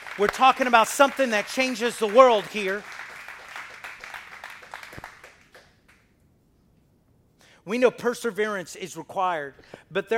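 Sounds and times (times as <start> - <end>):
audience clapping hands: 0.0 - 6.1
speech: 0.2 - 3.0, 7.7 - 10.1.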